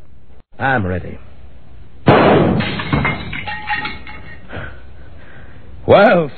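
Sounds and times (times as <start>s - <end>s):
speech: 0.6s - 1.3s, 5.9s - 6.3s
loud gunshot: 2.0s - 3.1s
clattering debris of a smashed candle holder and picture: 2.1s - 4.6s.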